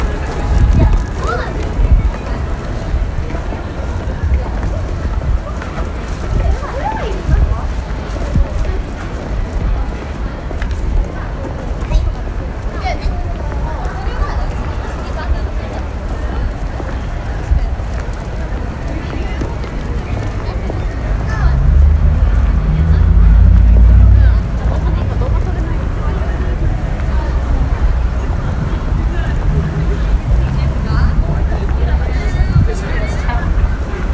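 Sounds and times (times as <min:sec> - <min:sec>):
crowd chatter in Shibuya at Halloween: 0:00.0 - 0:34.1
low traffic rumble in Shibuya: 0:00.0 - 0:34.1
heavy vehicle growl: 0:20.2 - 0:32.7.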